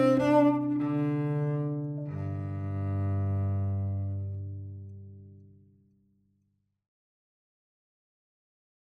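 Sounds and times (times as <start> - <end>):
cello: 0.0 - 6.7.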